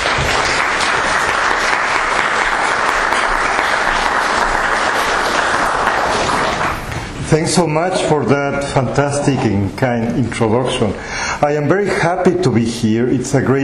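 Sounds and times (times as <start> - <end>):
lecture audience applause welcoming a professor: 0.0 - 7.1
speech: 7.3 - 13.6.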